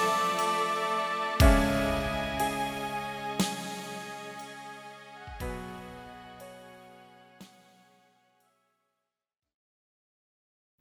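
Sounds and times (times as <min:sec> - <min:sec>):
slow drums: 0:00.0 - 0:04.6, 0:05.3 - 0:06.1
strings: 0:00.0 - 0:07.8
piano in a loop: 0:00.0 - 0:07.9.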